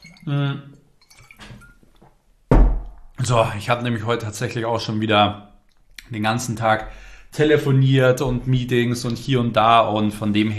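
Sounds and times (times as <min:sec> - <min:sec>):
person taking a quick sip of water: 0:00.0 - 0:01.9
speech: 0:00.2 - 0:00.8, 0:03.3 - 0:05.5, 0:06.1 - 0:10.5.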